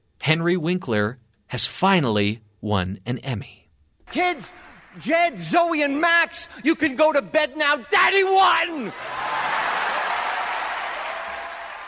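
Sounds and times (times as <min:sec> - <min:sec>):
speech: 0:00.2 - 0:09.2
audience clapping: 0:04.1 - 0:06.3, 0:08.9 - 0:11.8.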